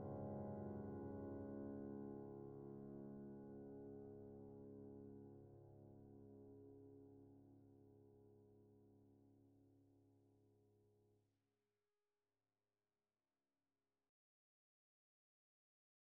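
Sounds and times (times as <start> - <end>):
piano: 0.0 - 9.0.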